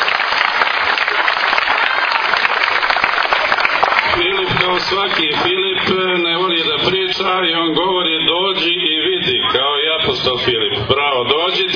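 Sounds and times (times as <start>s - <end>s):
audience applauding an artist: 0.0s - 6.0s
speech: 4.9s - 11.7s.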